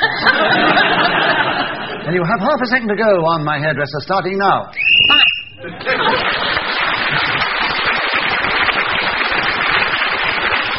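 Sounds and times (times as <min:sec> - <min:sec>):
audience laughter: 0:00.0 - 0:02.1, 0:05.6 - 0:07.7
speech: 0:02.1 - 0:04.8
shrill whistle blast marking end of round: 0:04.8 - 0:05.6
audience applause: 0:05.8 - 0:10.7.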